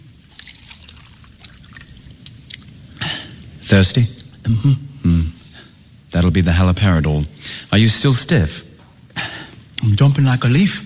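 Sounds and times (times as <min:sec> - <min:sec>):
cup of water being poured: 0:00.0 - 0:02.7
speech: 0:03.6 - 0:05.3, 0:06.2 - 0:08.7, 0:10.0 - 0:10.8.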